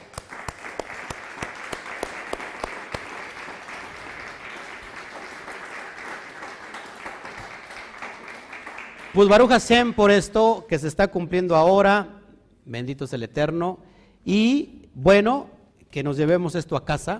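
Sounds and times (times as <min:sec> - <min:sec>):
audience applause: 0:00.0 - 0:09.5
speech: 0:09.2 - 0:17.1.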